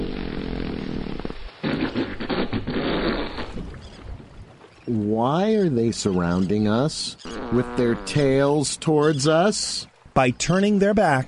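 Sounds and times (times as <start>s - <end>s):
humpback whales farting: 0.0s - 4.2s, 7.2s - 8.6s
speech: 4.9s - 11.2s.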